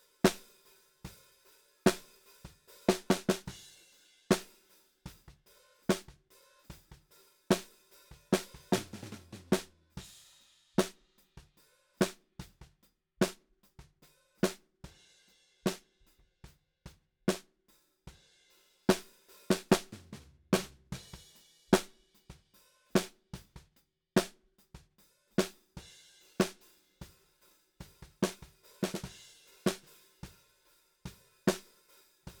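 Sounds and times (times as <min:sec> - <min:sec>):
snare drum: 0:01.8 - 0:03.6, 0:04.3 - 0:10.1, 0:10.8 - 0:12.6, 0:18.9 - 0:22.4, 0:23.0 - 0:24.4, 0:25.4 - 0:25.6, 0:26.4 - 0:26.6, 0:27.8 - 0:30.4, 0:31.4 - 0:32.3.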